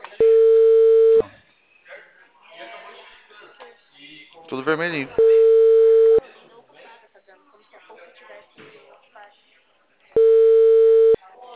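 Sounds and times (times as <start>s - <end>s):
telephone busy signal: 0.2s - 1.2s, 5.2s - 6.2s, 10.2s - 11.2s
speech: 4.5s - 5.3s.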